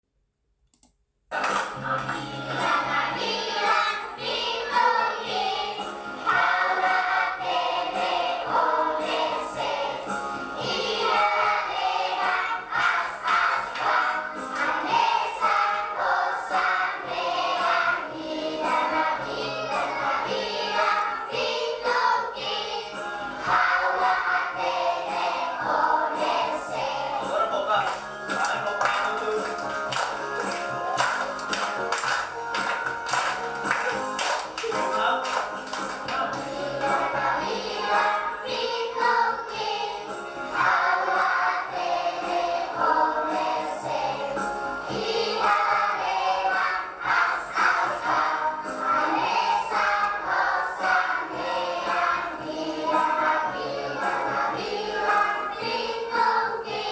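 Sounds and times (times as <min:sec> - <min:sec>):
Timorese children singing at school: 0:01.4 - 0:56.9.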